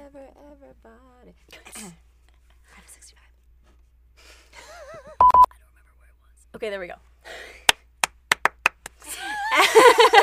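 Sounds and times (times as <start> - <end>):
speech: 6.6 - 7.1
hand claps: 7.7 - 9.1
laughter: 9.1 - 10.2.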